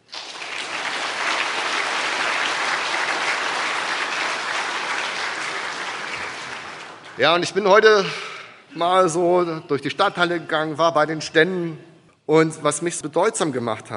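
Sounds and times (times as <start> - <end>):
audience applause: 0.0 - 7.6
speech: 7.2 - 13.9.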